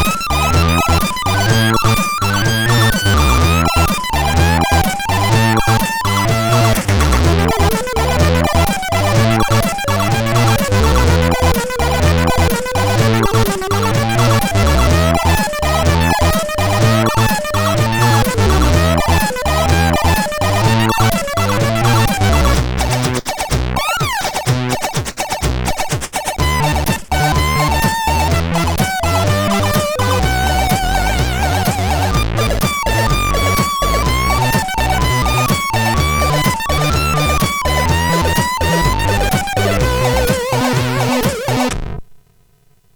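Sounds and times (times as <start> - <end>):
SID CSG8580R5 sound chip music: 0.0 - 41.8.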